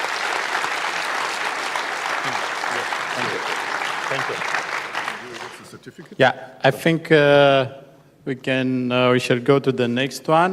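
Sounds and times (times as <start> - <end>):
audience applause at a ceremony: 0.0 - 5.8
speech: 2.2 - 4.7, 5.7 - 10.5.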